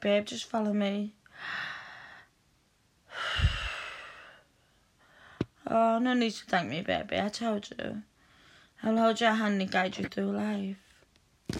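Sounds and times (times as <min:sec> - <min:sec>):
speech: 0:00.0 - 0:01.7, 0:05.7 - 0:08.1, 0:08.8 - 0:10.8
slow guided breathing: 0:01.3 - 0:02.4, 0:03.1 - 0:05.6, 0:08.2 - 0:08.8.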